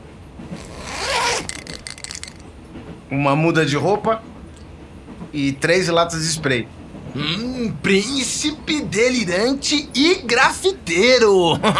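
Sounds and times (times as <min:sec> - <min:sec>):
backpack zipper being pulled open: 0:00.5 - 0:01.6
speech: 0:03.1 - 0:04.3, 0:05.3 - 0:11.7.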